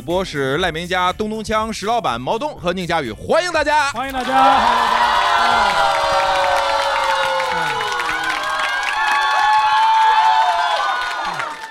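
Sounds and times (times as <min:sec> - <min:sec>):
speech: 0:00.0 - 0:06.5
live audience cheering at a show in Shijiazhuang: 0:04.1 - 0:11.6
shrill whoops and shouts: 0:04.1 - 0:11.6.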